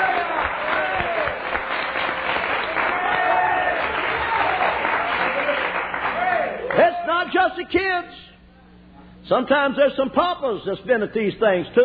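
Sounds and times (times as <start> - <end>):
audience clapping hands: 0.0 - 7.0
speech: 9.3 - 11.8.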